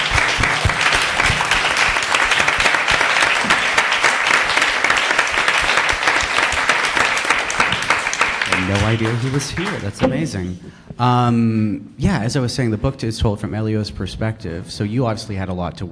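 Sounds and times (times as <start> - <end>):
audience applause for the author: 0.0 - 10.4
speech: 8.9 - 15.9.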